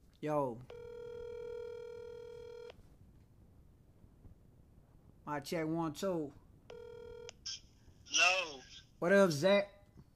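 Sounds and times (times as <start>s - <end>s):
low hum: 0.0s - 10.1s
speech: 0.2s - 0.8s, 5.3s - 6.4s, 9.0s - 9.7s
phone ringing tone on speakerphone: 0.7s - 2.8s, 6.7s - 7.4s.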